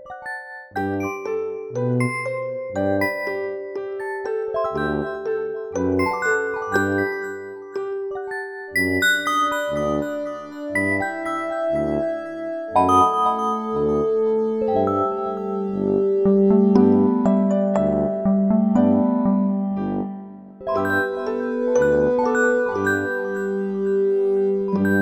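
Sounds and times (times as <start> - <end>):
playful music without drums: 0.0 - 25.0.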